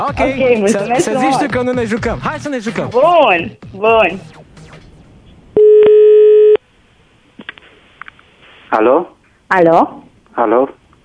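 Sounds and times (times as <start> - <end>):
speech: 0.1 - 4.4, 8.7 - 10.8
telephone ringing tone: 5.6 - 6.6.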